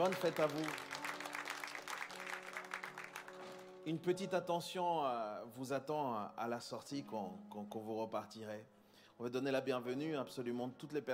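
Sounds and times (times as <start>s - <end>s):
speech: 0.0s - 0.9s, 3.8s - 11.1s
audience applauding: 0.0s - 3.7s.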